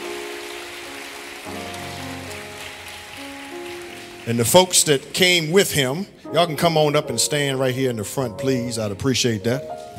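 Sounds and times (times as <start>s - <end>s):
audience clapping: 0.0s - 5.5s
speech: 1.5s - 1.8s, 4.2s - 9.9s.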